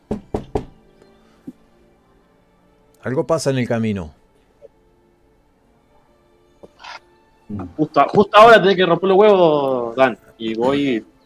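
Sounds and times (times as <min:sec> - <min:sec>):
knocking on wood: 0:00.0 - 0:00.8
speech: 0:03.0 - 0:04.2, 0:07.8 - 0:11.1.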